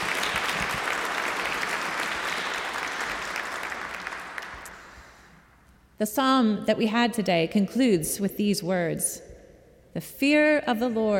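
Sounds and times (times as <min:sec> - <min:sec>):
audience applause: 0:00.0 - 0:05.0
speech: 0:06.0 - 0:09.2, 0:10.0 - 0:11.1.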